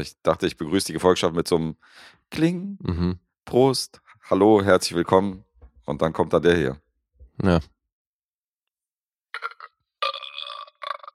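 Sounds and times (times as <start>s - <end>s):
speech: 0.0s - 6.8s, 7.4s - 7.8s
burp sound effect played from a box: 9.4s - 11.1s.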